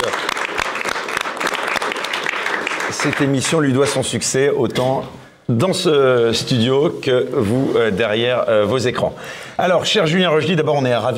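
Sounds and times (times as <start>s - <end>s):
audience applause: 0.0s - 3.7s
speech: 3.0s - 11.1s.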